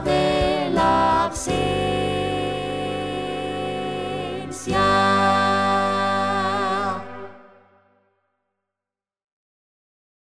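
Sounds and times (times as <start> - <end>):
SATB four-part choir singing: 0.0 - 7.7.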